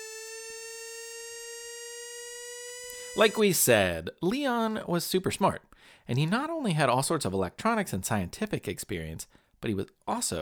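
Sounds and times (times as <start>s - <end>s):
gas detector alarm tone: 0.0s - 3.7s
speech: 3.2s - 10.4s.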